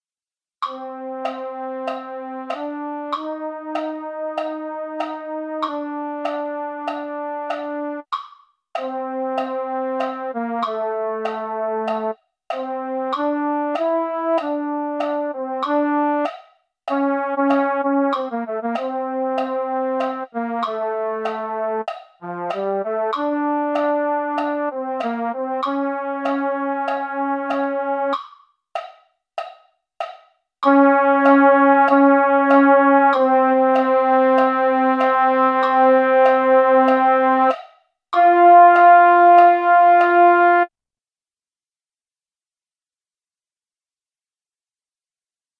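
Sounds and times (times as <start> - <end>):
MIDI baritone sound: 0.6 - 8.0, 8.8 - 16.3, 16.9 - 28.2, 30.6 - 37.6, 38.2 - 40.7.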